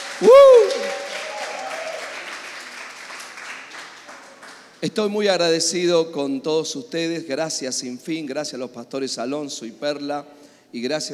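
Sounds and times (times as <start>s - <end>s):
loud audience applause: 0.0s - 4.8s
speech: 0.2s - 0.6s, 4.8s - 11.1s.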